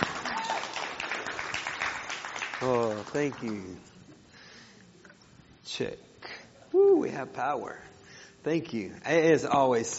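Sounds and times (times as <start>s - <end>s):
church audience applauding a performer: 0.0s - 3.8s
speech: 2.6s - 3.9s, 5.8s - 6.1s, 6.9s - 9.9s.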